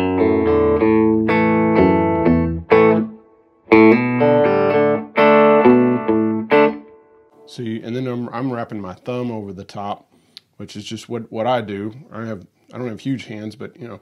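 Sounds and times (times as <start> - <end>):
electric guitar riff with hammer-ons on the low E string: 0.0 - 7.5
speech: 7.6 - 14.0.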